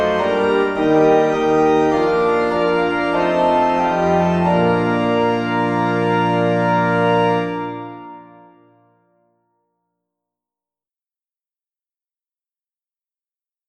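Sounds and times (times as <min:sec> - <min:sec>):
organ playing a hymn: 0:00.0 - 0:09.1.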